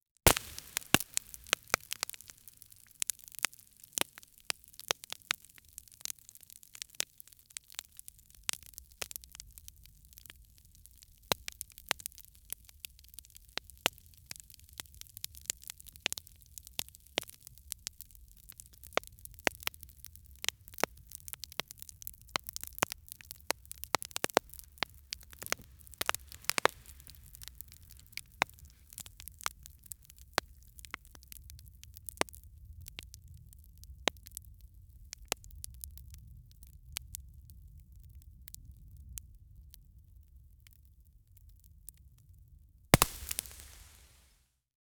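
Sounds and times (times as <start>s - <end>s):
intense crackling fire: 0.2s - 39.2s, 43.0s - 44.3s.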